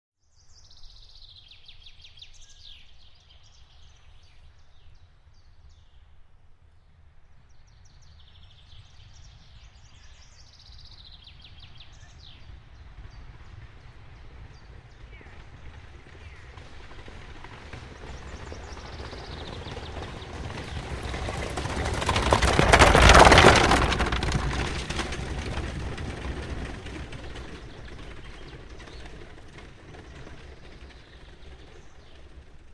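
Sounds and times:
horse-drawn carriage passing fast: 0:08.0 - 0:32.7.

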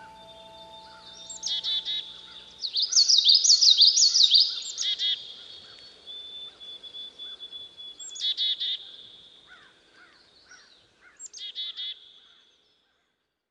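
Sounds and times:
soft piano tones: 0:00.0 - 0:02.8
Common yellowthroat song: 0:00.0 - 0:08.4.

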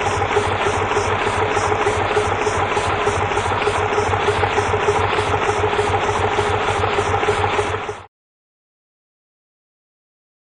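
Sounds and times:
diesel train valve air noise: 0:00.0 - 0:08.0
diesel train idling: 0:00.0 - 0:08.1.

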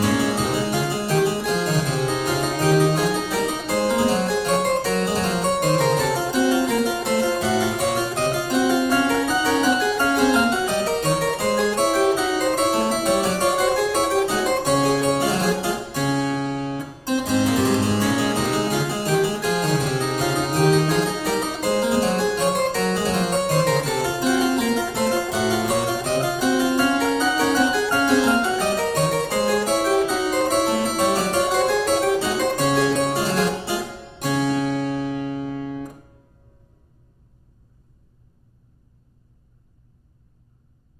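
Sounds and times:
harpsichord suite courante: 0:00.0 - 0:36.1.

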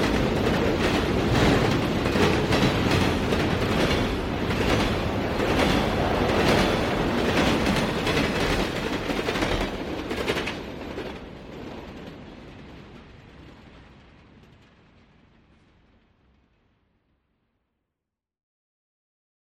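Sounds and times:
diesel train passing: 0:00.0 - 0:14.6.

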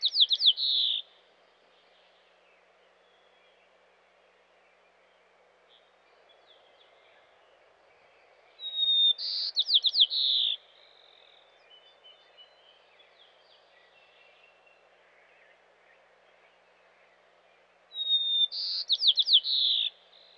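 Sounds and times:
white-crowned sparrow song in Western North America: 0:00.0 - 0:03.9, 0:04.6 - 0:20.3.

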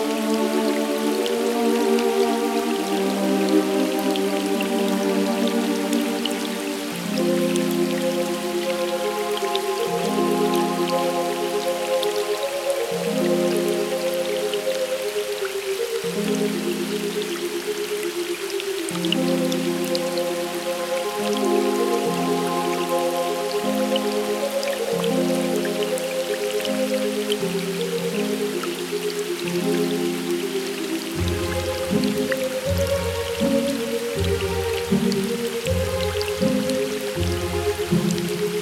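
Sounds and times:
rain: 0:00.0 - 0:38.6.

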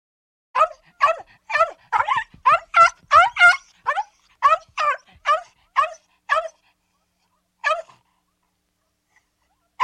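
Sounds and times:
small dog giving high yappy barks: 0:00.6 - 0:06.6, 0:07.6 - 0:08.0.

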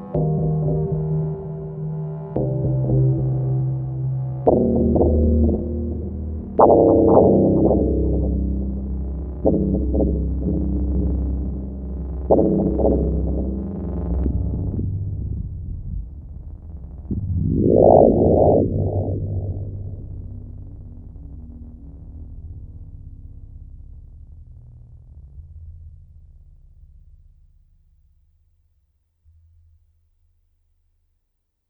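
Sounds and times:
terror drone: 0:00.0 - 0:24.6.

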